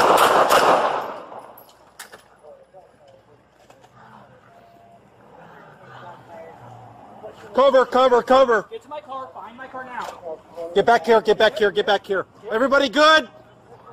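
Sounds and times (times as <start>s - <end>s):
gunshots from police body cam footage: 0.0s - 1.6s
voices: 2.2s - 13.9s
speech: 7.6s - 13.4s.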